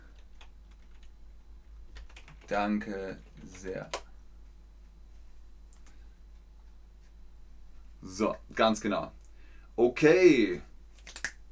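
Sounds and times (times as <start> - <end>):
faint typing on a computer keyboard: 0.1 - 1.1, 1.9 - 2.5, 11.0 - 11.4
speech: 2.5 - 4.0, 8.0 - 9.2, 9.8 - 10.7.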